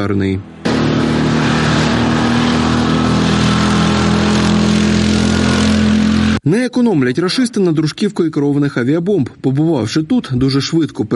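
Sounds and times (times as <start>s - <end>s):
speech: 0.0s - 0.5s, 6.4s - 11.1s
quad bike engine rumbling: 0.3s - 6.4s.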